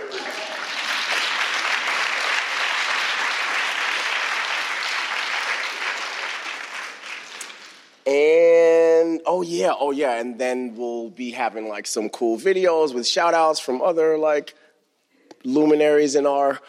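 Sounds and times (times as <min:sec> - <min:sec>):
audience round of applause: 0:00.0 - 0:08.0
speech: 0:08.1 - 0:08.4, 0:09.2 - 0:14.6, 0:15.4 - 0:16.6.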